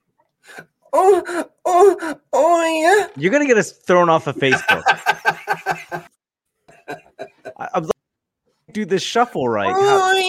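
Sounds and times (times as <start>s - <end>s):
speech: 0.5s - 5.0s, 7.8s - 8.0s, 8.8s - 10.2s
voice imitating exaggerated sexual moaning: 0.9s - 3.2s, 9.7s - 10.2s
laughter: 4.4s - 6.1s, 6.7s - 7.9s.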